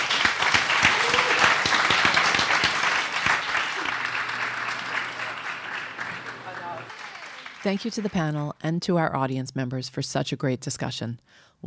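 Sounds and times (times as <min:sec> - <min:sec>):
audience applause for a panel: 0:00.0 - 0:08.5
speech: 0:07.6 - 0:11.6.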